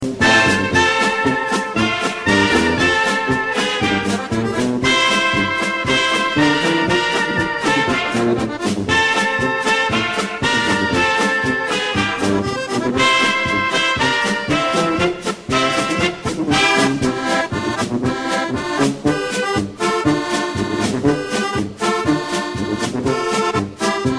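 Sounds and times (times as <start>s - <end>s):
polka music: 0.0s - 24.1s.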